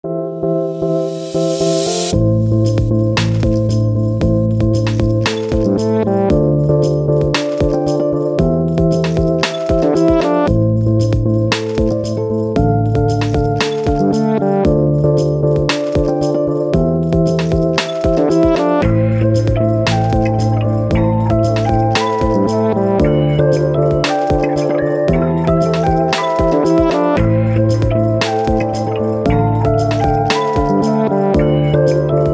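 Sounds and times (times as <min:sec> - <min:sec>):
mystic electronic music: 0:00.0 - 0:32.3.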